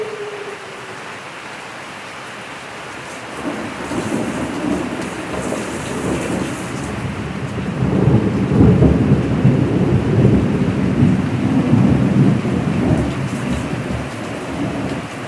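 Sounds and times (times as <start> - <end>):
thunderstorm: 3.2 - 15.2.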